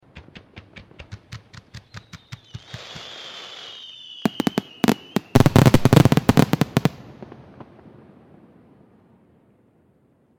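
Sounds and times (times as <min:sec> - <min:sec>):
fireworks rapid fire: 0:00.5 - 0:07.7.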